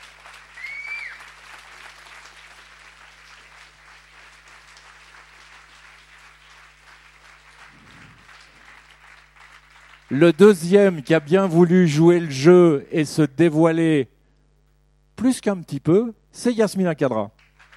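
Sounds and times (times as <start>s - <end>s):
audience applause: 0.0s - 12.5s, 17.4s - 17.7s
speech: 10.1s - 14.1s, 15.2s - 17.4s.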